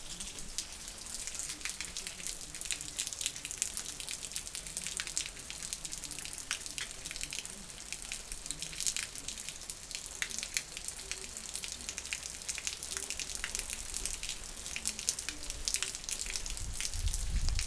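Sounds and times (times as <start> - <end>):
rain gutter: 0.0 - 17.6.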